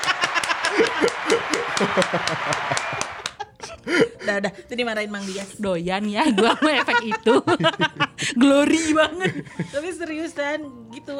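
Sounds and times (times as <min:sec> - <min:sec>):
hand clapping: 0:00.0 - 0:03.5
people laughing: 0:00.0 - 0:04.2, 0:06.2 - 0:09.8
speech: 0:01.9 - 0:03.2, 0:03.9 - 0:11.1.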